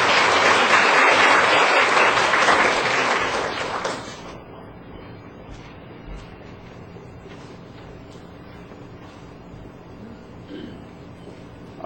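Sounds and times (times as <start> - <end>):
audience applauding to welcome a woman being introduced: 0.0 - 4.4.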